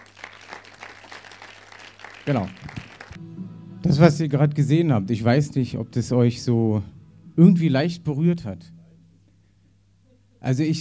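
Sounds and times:
crowd applauding: 0.0 - 3.2
speech: 2.2 - 2.8, 3.8 - 8.8, 10.4 - 10.7
faint low hum: 3.6 - 10.7.

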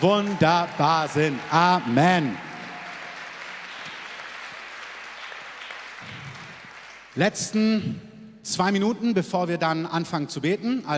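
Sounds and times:
speech: 0.0 - 2.5, 7.2 - 10.9
audience applause: 0.0 - 7.2.

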